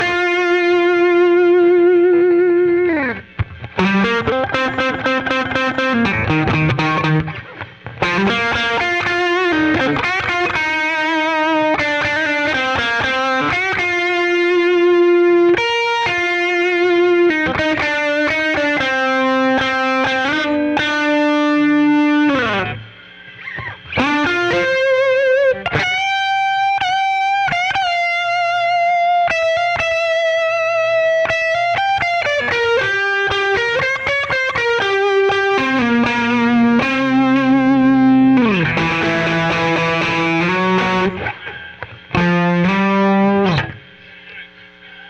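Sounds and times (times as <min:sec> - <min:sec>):
solo guitar: 0:00.0 - 0:45.0.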